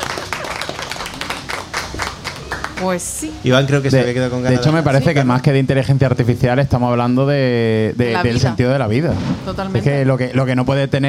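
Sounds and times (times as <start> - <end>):
spontaneous studio audience applause: 0.0 - 3.7
speech: 2.8 - 11.0.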